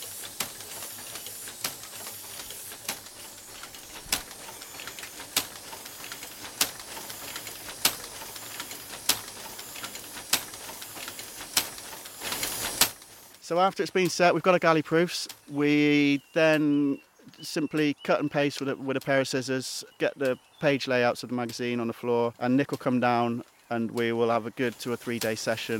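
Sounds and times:
typesetting machine blowing air through spool paper: 0.0s - 13.5s, 24.7s - 25.7s
speech: 13.5s - 25.7s.

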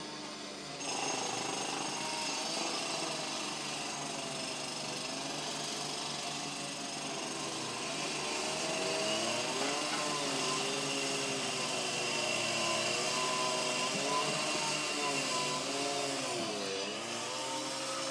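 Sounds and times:
drilling: 0.0s - 18.0s.

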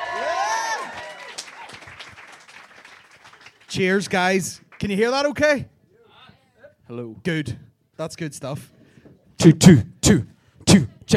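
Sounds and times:
audience applause: 0.0s - 5.0s
speech: 3.7s - 5.7s, 6.9s - 8.8s, 9.4s - 11.1s.

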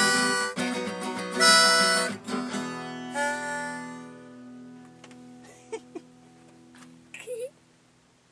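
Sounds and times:
pitch pipe: 0.0s - 4.5s
blues on guitar: 0.0s - 7.3s.

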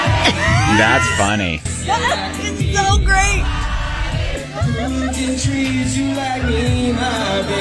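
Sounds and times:
laughter: 0.1s - 1.4s, 4.3s - 6.6s
crowd cheering and whooping: 0.2s - 1.4s, 3.4s - 5.6s
speech: 0.8s - 3.6s, 4.6s - 7.5s.

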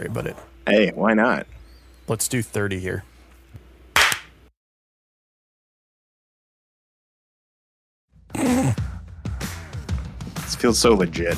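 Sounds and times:
speech: 0.0s - 3.1s, 10.6s - 11.3s
hand clap to sync recordings: 4.0s - 4.3s.

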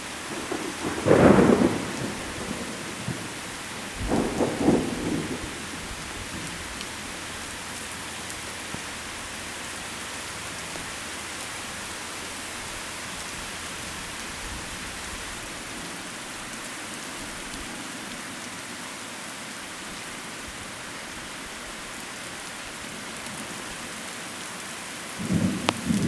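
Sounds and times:
sudden Fort Wayne thunderstorm: 0.2s - 6.6s, 25.2s - 26.0s.

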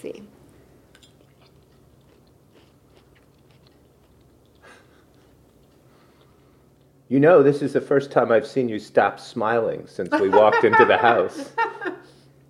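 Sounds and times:
speech: 0.0s - 0.4s, 7.1s - 12.0s
someone biting and chewing a meat dish: 0.9s - 7.0s
laughter: 10.1s - 12.1s.

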